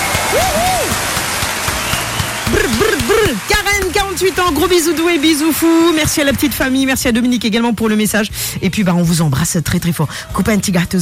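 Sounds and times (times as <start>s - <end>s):
audience applause: 0.0s - 6.3s
speech: 3.3s - 10.9s.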